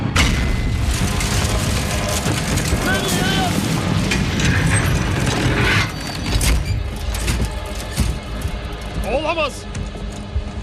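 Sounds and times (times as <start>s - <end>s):
blast of a vehicle hitting a landmine: 0.2s - 5.5s
rattling mechanical clanks and debris: 0.2s - 10.6s.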